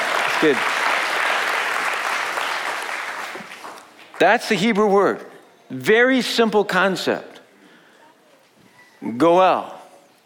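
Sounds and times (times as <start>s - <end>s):
audience applause at a sermon: 0.0s - 3.8s
speech: 0.4s - 0.9s, 4.2s - 7.3s, 9.0s - 9.8s.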